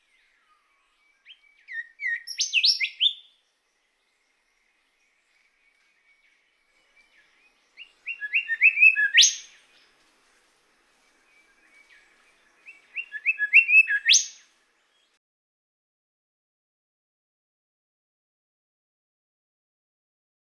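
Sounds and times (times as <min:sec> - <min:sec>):
golden whistler bird calling: 0:01.3 - 0:03.3, 0:07.1 - 0:10.0, 0:11.3 - 0:14.4.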